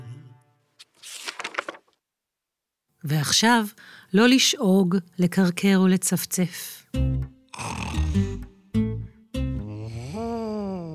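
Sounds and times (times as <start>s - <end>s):
speech: 3.0s - 7.1s
voice imitating a sleeping elephant's snoring: 7.5s - 8.4s, 9.6s - 10.9s.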